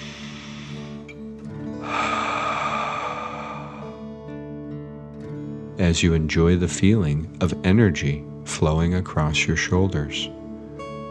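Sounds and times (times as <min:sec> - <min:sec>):
deep breath in and out during a relaxation exercise: 0:00.0 - 0:04.6
gentle sustained music: 0:00.0 - 0:11.0
speech: 0:05.8 - 0:10.4.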